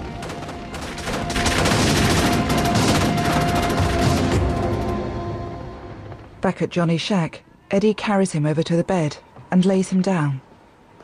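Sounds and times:
rapid gunfire from a gang in a film scene: 0.0 - 5.0
speech: 6.4 - 10.5.

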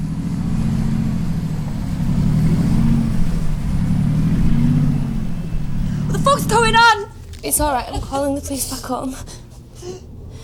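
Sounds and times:
yacht engine droning as the yacht turns and motors away: 0.0 - 7.2
speech: 6.4 - 9.4.

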